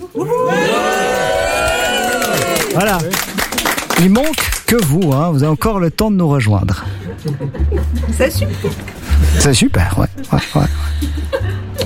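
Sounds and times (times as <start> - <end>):
laughter: 0.0 - 3.4, 6.8 - 11.8
speech: 0.1 - 0.6, 2.8 - 3.2, 4.0 - 11.7
live studio audience cheering during a Swiss radio music show: 0.2 - 4.0.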